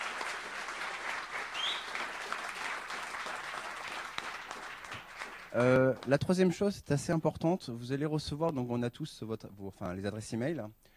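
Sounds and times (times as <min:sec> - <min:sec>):
audience applause: 0:00.0 - 0:06.1
speech: 0:05.5 - 0:10.9.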